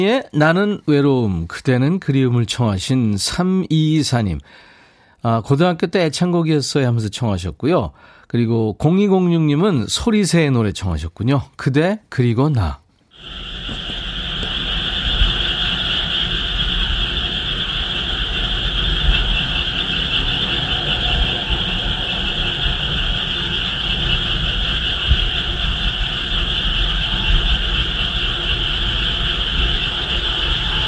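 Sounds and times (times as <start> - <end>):
speech: 0.0 - 14.0
frogs croaking in chorus: 13.2 - 30.8.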